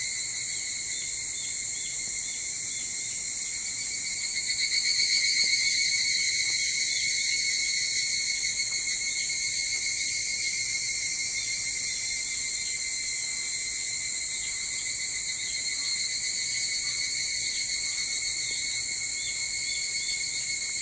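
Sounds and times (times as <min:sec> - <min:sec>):
evening cicada chorus: 0:00.0 - 0:20.8.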